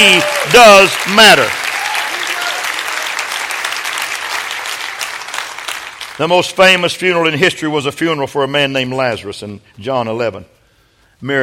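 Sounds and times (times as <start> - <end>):
speech: 0.0 - 1.6, 6.2 - 10.6, 11.2 - 11.4
audience applause: 0.0 - 6.2.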